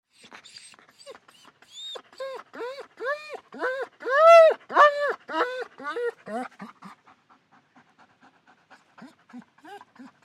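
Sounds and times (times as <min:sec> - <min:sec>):
German Shepherd dog whining: 0:00.2 - 0:07.0, 0:09.0 - 0:10.2.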